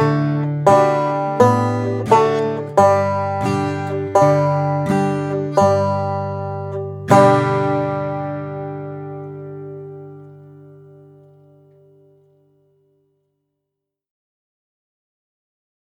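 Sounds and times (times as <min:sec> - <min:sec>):
blues music: 0:00.0 - 0:11.8.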